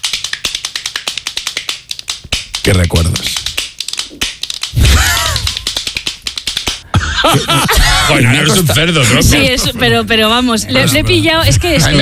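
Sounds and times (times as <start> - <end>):
plastic toy hand clapper rattling side to side: 0.0 - 6.8
speech: 2.7 - 3.5, 7.2 - 12.0
laughter: 4.8 - 5.7, 6.8 - 12.0.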